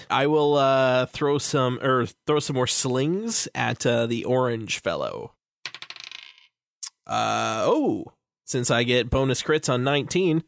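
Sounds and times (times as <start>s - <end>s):
speech: 0.0s - 5.4s, 7.1s - 10.4s
dice rolling on a table: 5.6s - 6.6s.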